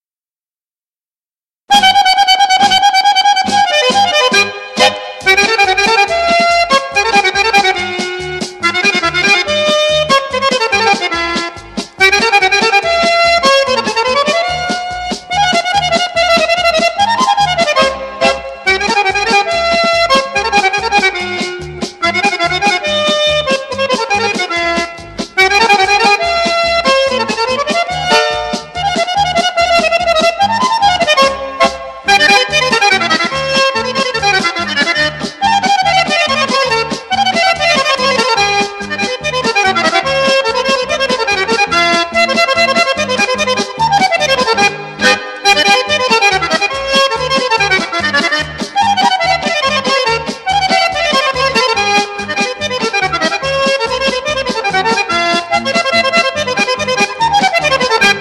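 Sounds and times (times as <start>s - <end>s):
polka music: 1.7s - 58.1s.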